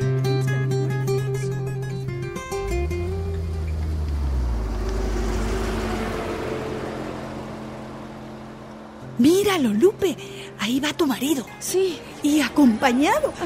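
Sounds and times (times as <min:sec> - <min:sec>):
road noise of a driving car: 0:00.0 - 0:13.4
car engine humming and shifting gear: 0:00.8 - 0:13.4
speech: 0:09.4 - 0:13.4.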